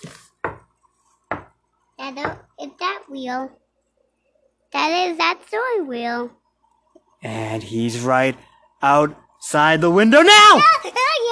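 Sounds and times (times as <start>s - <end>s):
sharp solid knocks: 0.4s - 1.6s
speech: 2.1s - 3.6s, 4.7s - 6.4s, 7.2s - 11.3s.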